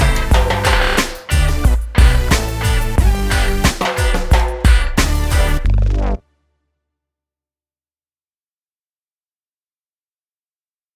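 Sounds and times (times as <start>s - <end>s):
instrumental music: 0.0s - 6.2s.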